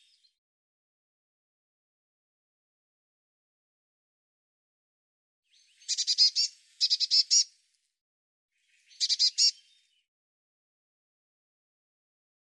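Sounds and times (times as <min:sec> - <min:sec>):
buzzy chattering bird calls: 0:05.9 - 0:07.5, 0:09.0 - 0:09.5.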